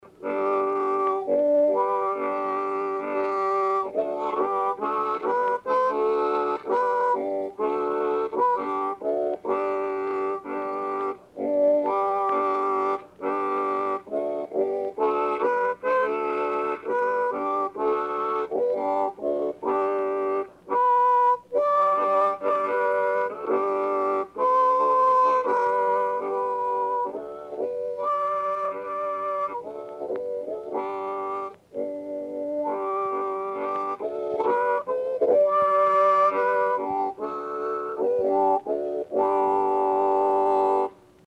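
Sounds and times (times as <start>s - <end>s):
harmonica: 0.0s - 41.2s.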